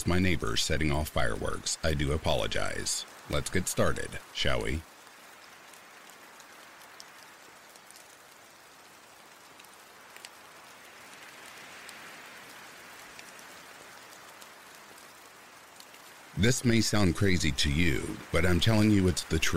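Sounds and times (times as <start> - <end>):
speech: 0.0 - 4.9, 16.4 - 19.5
rain falling: 0.0 - 19.5.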